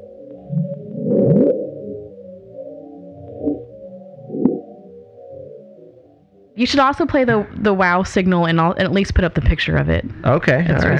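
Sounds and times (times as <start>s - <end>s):
the Bloop, low-frequency underwater ocean sound: 0.0s - 6.6s
speech: 6.6s - 10.9s.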